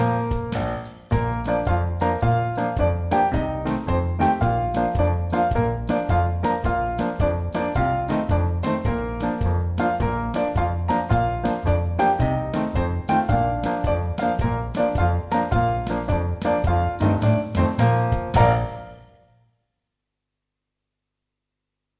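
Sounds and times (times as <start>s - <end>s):
marching drum taps in six-eight time: 0.2s - 18.7s.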